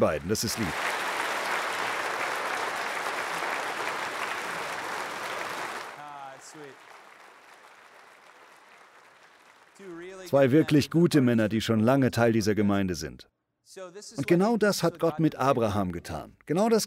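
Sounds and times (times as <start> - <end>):
speech: 0.0 - 1.0, 10.3 - 16.8
audience applause: 0.0 - 10.6.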